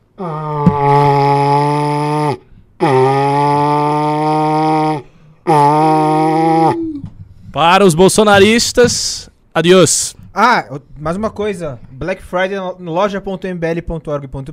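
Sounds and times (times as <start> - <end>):
speech: 0.2 - 0.4, 7.6 - 14.5
man imitating cattle mooing: 0.2 - 7.1.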